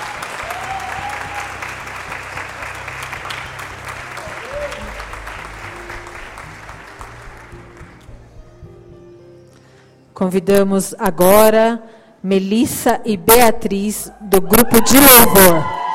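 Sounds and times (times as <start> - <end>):
audience applause: 0.0 - 8.1
speech: 10.2 - 15.8.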